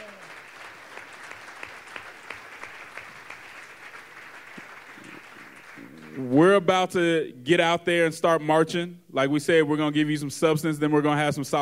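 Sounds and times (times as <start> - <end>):
audience round of applause: 0.0 - 6.4
speech: 6.2 - 11.5.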